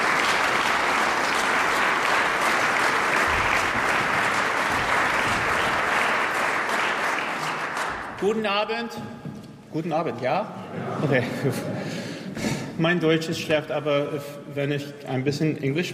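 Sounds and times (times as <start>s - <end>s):
concert audience applause: 0.0s - 8.3s
speech: 8.2s - 12.0s, 12.8s - 15.9s
laughter: 10.6s - 12.5s.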